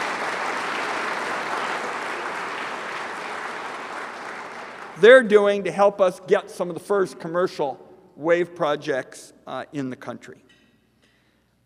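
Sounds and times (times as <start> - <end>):
audience applause: 0.0 - 5.2
speech: 5.0 - 10.6.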